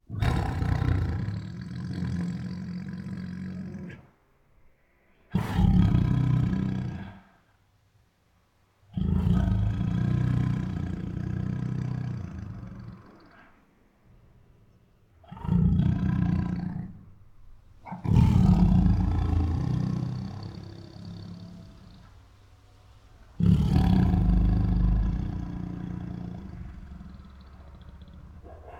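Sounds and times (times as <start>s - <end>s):
tiger growling: 0.0s - 4.1s, 5.3s - 7.3s, 8.9s - 13.7s, 15.2s - 17.2s, 17.8s - 22.4s, 23.2s - 28.7s.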